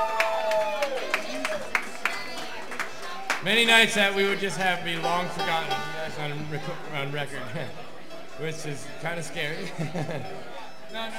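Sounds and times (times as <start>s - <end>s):
steady evenly spaced hand claps: 0.0s - 3.5s
speech: 3.4s - 11.1s
laughter: 9.2s - 10.9s.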